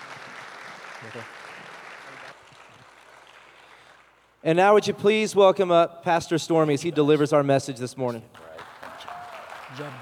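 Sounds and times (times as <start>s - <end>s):
crowd clapping in a large room: 0.0s - 4.4s, 8.3s - 10.0s
speech: 1.0s - 1.5s, 4.4s - 8.4s, 9.8s - 10.0s.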